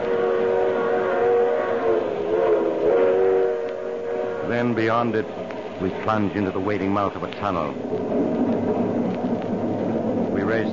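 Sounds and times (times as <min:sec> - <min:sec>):
train running fast on open track: 0:00.0 - 0:10.7
speech: 0:04.6 - 0:09.0, 0:10.4 - 0:10.7.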